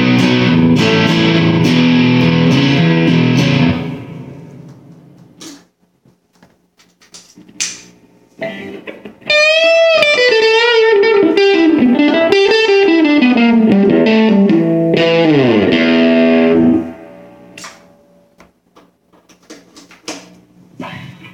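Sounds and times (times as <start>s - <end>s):
distorted amplifiers: 0.0s - 5.5s, 8.1s - 18.4s.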